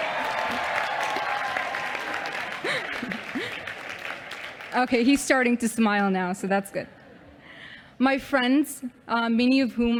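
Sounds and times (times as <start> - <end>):
audience round of applause: 0.0 - 4.8
speech: 4.7 - 7.0, 8.0 - 9.9.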